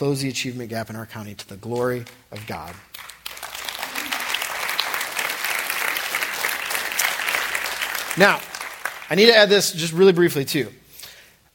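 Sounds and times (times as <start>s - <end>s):
speech: 0.0s - 3.1s, 8.2s - 8.5s, 9.1s - 10.8s
audience clapping: 1.4s - 9.8s.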